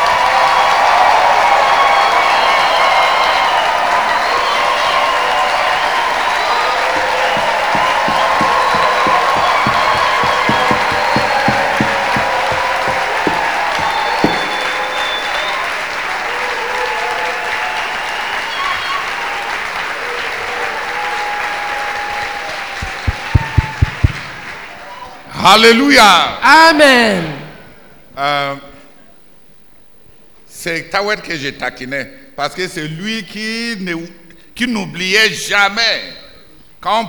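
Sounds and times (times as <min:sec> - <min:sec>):
church congregation applauding: 0:00.0 - 0:25.7
speech: 0:25.5 - 0:27.4, 0:28.2 - 0:28.6, 0:30.6 - 0:36.2, 0:36.8 - 0:37.0.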